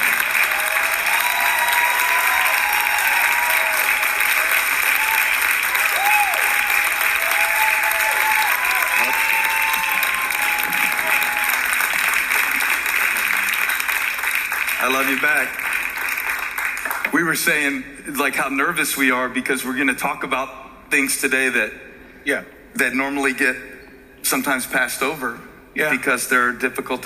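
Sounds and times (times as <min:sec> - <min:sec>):
church congregation applauding at Relentless Church: 0:00.0 - 0:17.2
speech: 0:15.1 - 0:15.6, 0:17.2 - 0:23.7, 0:24.3 - 0:27.0.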